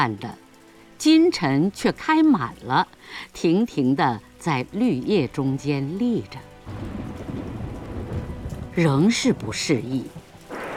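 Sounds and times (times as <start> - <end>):
speech: 0.0 - 0.4, 1.0 - 7.2, 8.8 - 10.2
heavy rain: 0.0 - 10.7
thunder: 6.7 - 9.7, 10.5 - 10.7.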